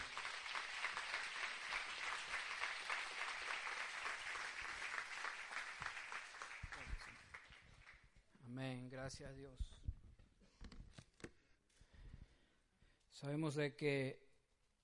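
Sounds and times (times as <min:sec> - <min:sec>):
audience applause: 0:00.0 - 0:08.0
speech: 0:08.6 - 0:09.9, 0:13.2 - 0:14.2.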